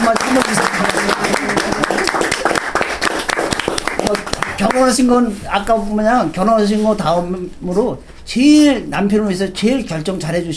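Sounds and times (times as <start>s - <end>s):
audience applause: 0.0s - 4.8s
speech: 4.9s - 10.5s.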